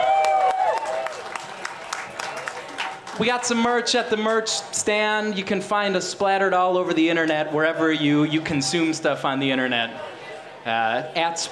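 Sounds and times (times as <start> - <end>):
audience cheering and applause: 0.0 - 3.3
speech: 3.2 - 11.4.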